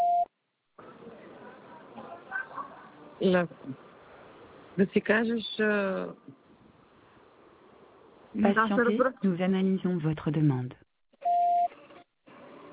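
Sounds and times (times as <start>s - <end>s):
beep from an automated phone line: 0.0s - 0.3s, 11.2s - 11.7s
speech: 3.2s - 3.9s, 4.8s - 6.4s, 8.4s - 10.8s.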